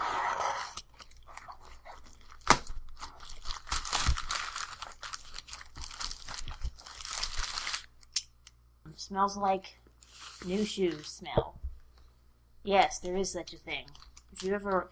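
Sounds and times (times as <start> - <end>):
plastic wrap and packing tape on a package crinkling and tearing: 0.8 - 8.2, 13.7 - 14.9
speech: 9.1 - 9.8, 10.4 - 11.6, 12.7 - 14.9.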